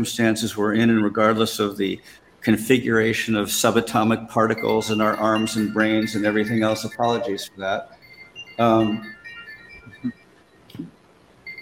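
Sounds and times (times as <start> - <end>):
speech: 0.0 - 8.0, 8.6 - 9.2, 10.0 - 10.2, 10.8 - 11.0
smartwatch alert tones: 3.6 - 10.3.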